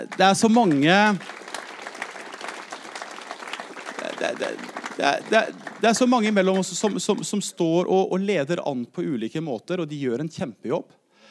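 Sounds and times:
speech: 0.0 - 1.4, 4.3 - 11.0
audience applause: 0.0 - 7.4.

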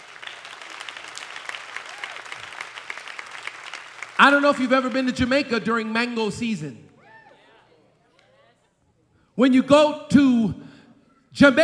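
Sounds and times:
audience applause: 0.0 - 5.3
speech: 4.2 - 6.8, 9.4 - 10.6, 11.4 - 11.6.

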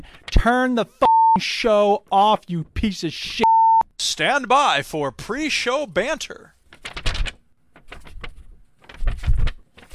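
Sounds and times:
speech: 0.0 - 3.5, 4.1 - 6.6
paper rustling: 6.5 - 9.9.

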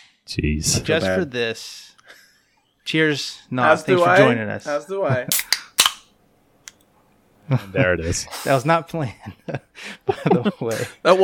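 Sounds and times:
speech: 0.3 - 2.2, 2.9 - 5.5, 7.5 - 11.2
can of hard seltzer cracking open: 5.3 - 6.1
laughter: 7.5 - 11.2.

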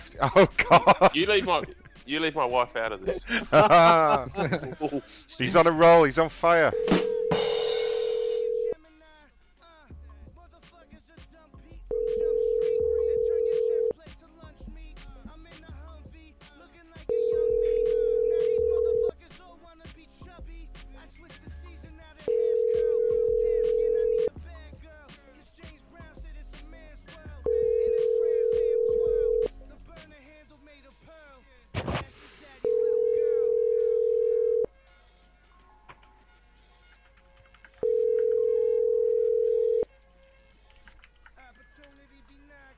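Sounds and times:
laughter: 0.0 - 2.3, 3.0 - 5.4
speech: 0.2 - 7.1
ringing tone of an outgoing telephone call: 6.6 - 8.8, 11.9 - 14.0, 17.1 - 19.1, 22.3 - 24.3, 27.5 - 29.5, 32.6 - 34.7, 37.8 - 39.9.

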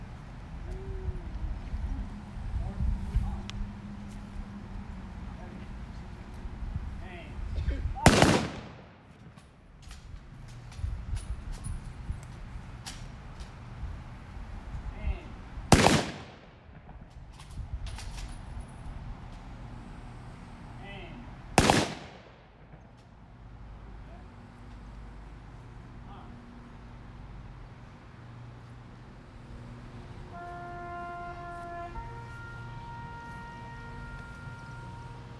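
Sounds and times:
steady outdoor noise: 0.0 - 35.3
rifle volleys from a Memorial Day firing detail salute in Belchertown: 8.1 - 10.0, 15.7 - 16.6, 21.6 - 22.7.

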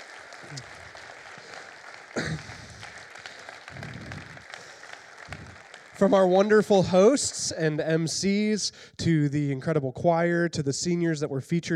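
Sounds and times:
audience applause: 0.0 - 7.4
speech: 0.4 - 0.8, 6.0 - 11.7.

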